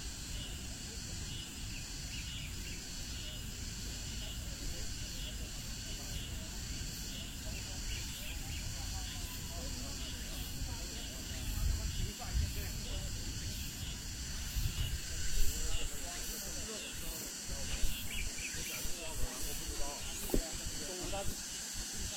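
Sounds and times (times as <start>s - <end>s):
cicadas buzzing after rain at Ming Xiaoling, Nanjing: 0.0s - 22.1s.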